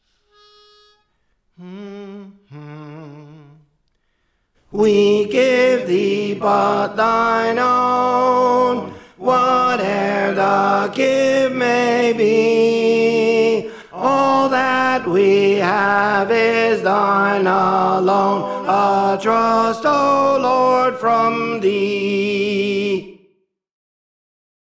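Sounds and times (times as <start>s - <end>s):
tenor singing: 1.6s - 3.7s, 4.7s - 23.1s.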